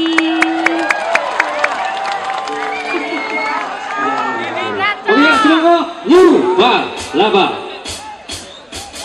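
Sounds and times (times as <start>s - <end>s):
audience clapping for a singer: 0.0s - 4.8s
speech: 6.1s - 7.6s.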